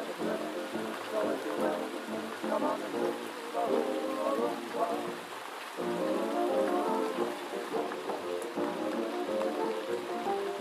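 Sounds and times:
gentle night rain: 0.0 - 10.5
old-time music with sustained tones: 0.0 - 10.5
speech: 2.4 - 6.8.

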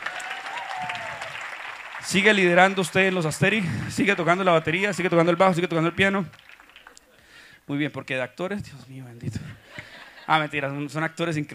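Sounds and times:
audience applause: 0.0 - 7.1
speech: 2.0 - 6.4, 7.7 - 9.6, 10.3 - 11.5.

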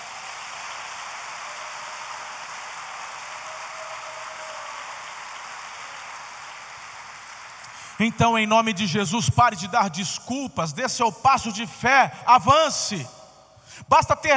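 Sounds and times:
audience applause: 0.0 - 8.6
speech: 8.0 - 13.2, 13.8 - 14.3.

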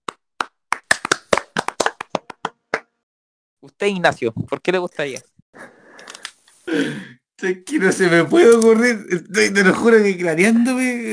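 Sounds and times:
applause: 0.1 - 2.9
speech: 3.6 - 5.7, 6.7 - 11.1.

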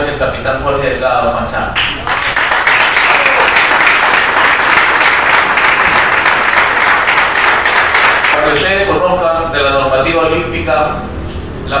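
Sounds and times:
speech: 0.2 - 2.1, 8.4 - 9.0, 9.6 - 11.7
loud crowd applause: 1.8 - 8.4.

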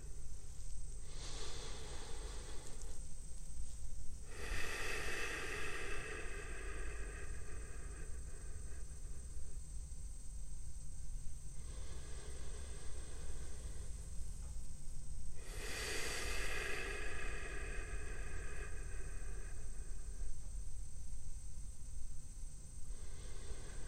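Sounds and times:
low steady hum: 0.0 - 23.8
slow breathing in and out through the nose: 1.0 - 3.1, 4.2 - 9.6, 11.5 - 14.5, 15.3 - 20.5, 22.8 - 23.8.

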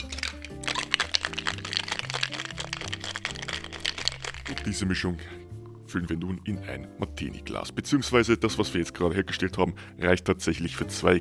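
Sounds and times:
cocktail being shaken in a shaker: 0.0 - 5.0
speech: 4.6 - 11.1.

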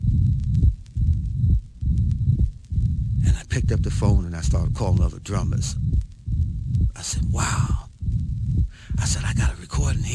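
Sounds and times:
sharp mitral first heart sound: 0.0 - 9.5
speech: 3.6 - 6.0, 7.0 - 7.8, 9.0 - 10.1.

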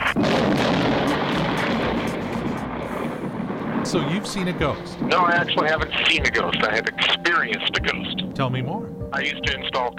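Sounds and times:
thunder sound effect: 0.0 - 6.9
speech: 3.9 - 9.9.

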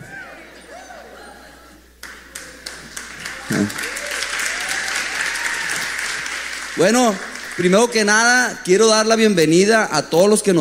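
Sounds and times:
audience applause: 2.0 - 8.2
speech: 3.5 - 3.9, 6.8 - 10.6.

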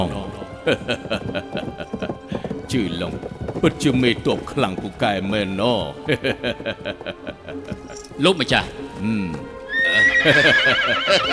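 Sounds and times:
speech: 0.0 - 2.1, 2.7 - 11.3
laughter: 0.4 - 2.5, 6.0 - 8.0, 9.8 - 11.3
horse neighing: 9.6 - 11.3.

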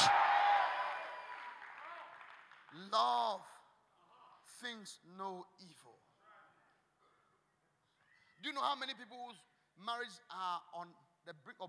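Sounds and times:
audience shouting: 0.0 - 1.6
audience clapping: 0.0 - 3.2
speech: 2.7 - 3.6, 4.5 - 6.1, 8.4 - 11.6.

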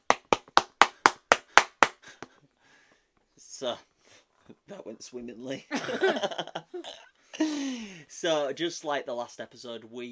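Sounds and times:
hand clapping: 0.0 - 2.4
speech: 3.6 - 3.9, 4.5 - 10.1.

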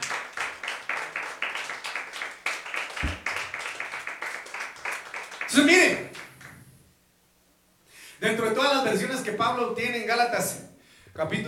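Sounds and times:
audience clapping hands: 0.0 - 6.6
speech: 5.5 - 6.0, 8.2 - 11.4.

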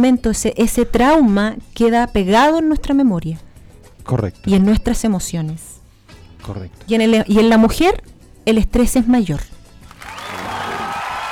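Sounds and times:
speech: 0.0 - 5.7, 6.4 - 9.6
applause sound effect: 9.8 - 11.3.

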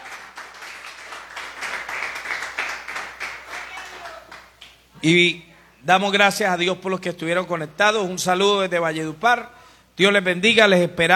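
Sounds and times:
audience clapping hands in applause: 0.0 - 4.8
speech: 5.0 - 11.1.

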